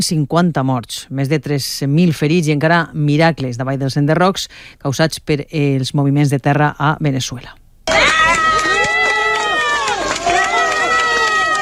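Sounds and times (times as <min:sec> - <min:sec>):
speech: 0:00.0 - 0:08.1
crowd applauding a rescued survivor: 0:07.9 - 0:11.6.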